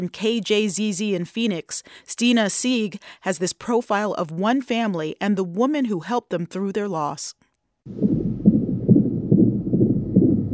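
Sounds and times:
speech: 0.0 - 8.1
fetal heartbeat recorded on a cell phone: 7.9 - 10.5.

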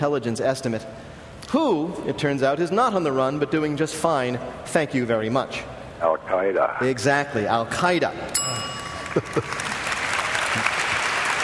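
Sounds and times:
speech: 0.0 - 9.7
audience applause: 9.0 - 11.4.

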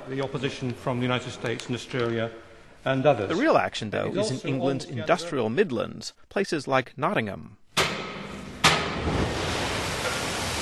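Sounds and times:
speech: 0.1 - 7.6
hopper train dumping coal at Ratcliffe-on-Soar power plant: 8.3 - 10.6.

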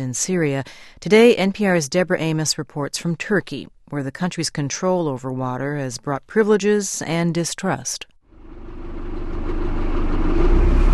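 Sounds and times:
speech: 0.0 - 8.1
small fishing boat engine on the waters of the Bosphorus: 8.2 - 10.9.

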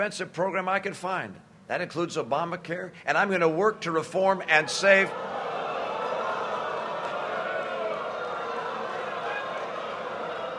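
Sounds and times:
speech: 0.0 - 5.3
large audience booing: 4.6 - 10.5.

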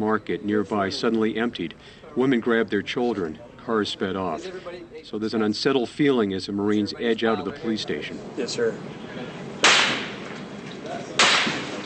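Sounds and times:
speech: 0.0 - 9.4
low hiss: 0.0 - 11.8
gunshots aimed at Marines: 9.6 - 10.2, 11.2 - 11.8.

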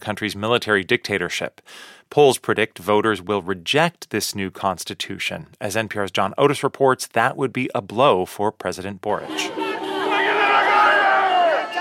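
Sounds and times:
speech: 0.0 - 9.6
boisterous street crowd chanting at a rally in Santiago, Chile: 9.3 - 11.8.

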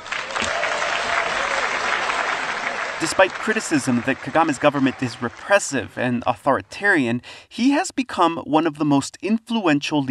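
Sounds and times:
applause at an African Union summit welcoming Paul Kagame: 0.0 - 6.2
speech: 3.0 - 10.0.

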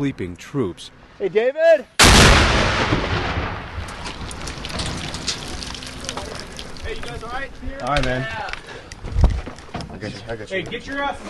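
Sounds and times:
speech: 0.0 - 3.2, 6.9 - 9.2, 9.9 - 11.2
mortar rounds exploding in a camp: 2.0 - 6.9.

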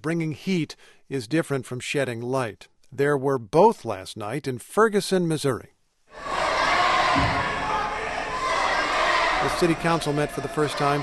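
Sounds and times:
speech: 0.0 - 6.3, 7.1 - 7.4, 9.4 - 11.0
crowd chanting at council meeting: 6.1 - 11.0.

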